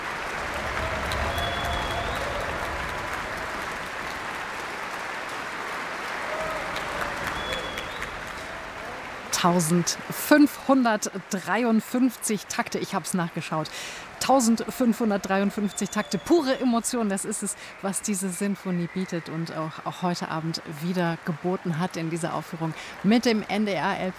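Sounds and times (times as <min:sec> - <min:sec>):
concert audience applause: 0:00.0 - 0:10.5, 0:13.8 - 0:19.3
speech: 0:09.4 - 0:24.1.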